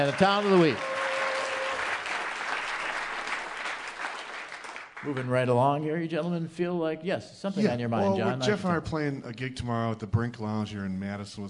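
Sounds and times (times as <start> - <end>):
speech: 0.0 - 0.9, 5.0 - 11.4
audience applause: 0.0 - 5.5.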